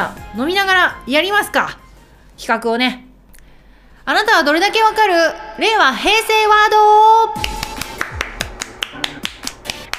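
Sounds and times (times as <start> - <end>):
speech: 0.0 - 1.8, 2.4 - 3.0, 4.0 - 7.6
one person clapping: 7.4 - 9.9.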